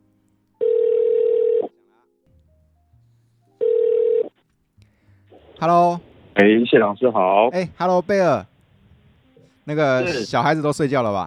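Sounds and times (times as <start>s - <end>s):
telephone ringback tones on an outgoing call: 0.6s - 1.8s, 3.6s - 4.4s
speech: 5.6s - 8.5s, 9.6s - 11.2s.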